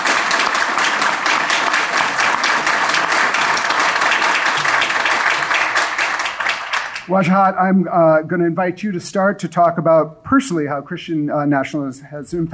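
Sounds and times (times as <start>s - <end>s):
audience applause: 0.0s - 7.1s
speech: 7.1s - 12.5s.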